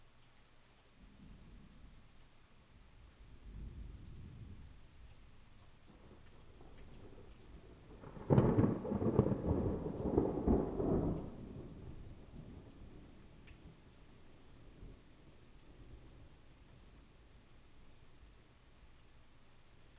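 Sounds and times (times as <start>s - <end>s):
thunder: 5.9s - 13.7s.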